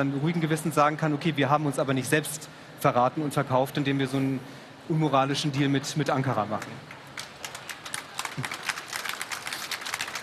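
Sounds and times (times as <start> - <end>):
speech: 0.0 - 6.9, 8.4 - 8.6
applause: 6.4 - 10.2.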